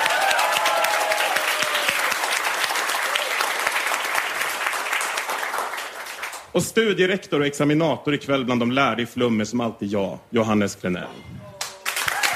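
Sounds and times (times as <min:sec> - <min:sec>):
audience applause: 0:00.0 - 0:06.5, 0:11.6 - 0:12.3
speech: 0:06.6 - 0:11.4.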